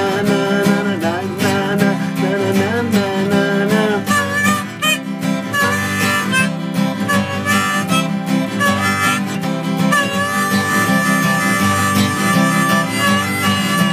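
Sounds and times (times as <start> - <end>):
guitar: 0.0 - 13.9
harmonica: 3.3 - 13.9.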